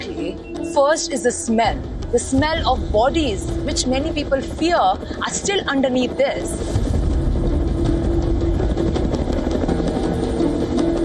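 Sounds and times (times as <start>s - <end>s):
speech: 0.7s - 6.9s
military helicopters roaring: 1.2s - 11.0s.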